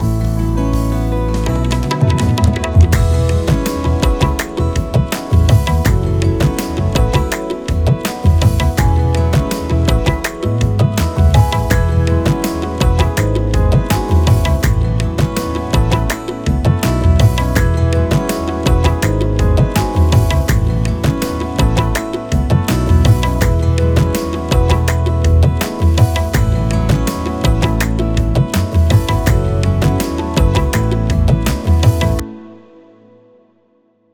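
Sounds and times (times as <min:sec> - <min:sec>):
tabla: 0:00.0 - 0:32.3.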